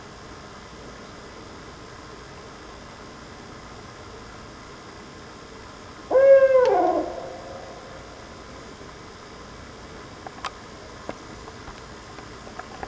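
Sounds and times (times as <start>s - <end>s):
owl hoot: 6.1s - 8.7s.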